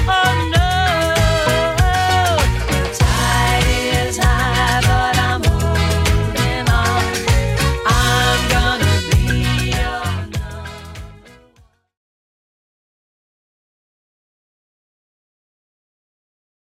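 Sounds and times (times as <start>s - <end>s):
80s drum machine beat at 98 bpm: 0.0s - 11.2s.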